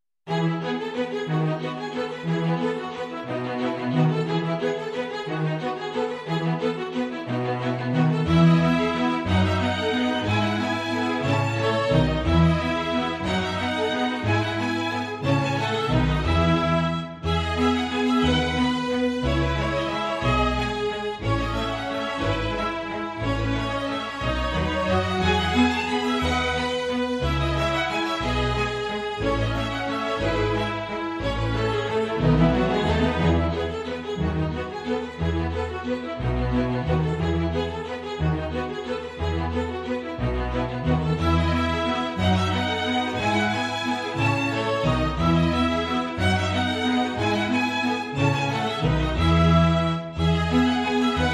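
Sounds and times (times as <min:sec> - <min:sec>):
strings playing a minuet: 0:00.3 - 0:51.3.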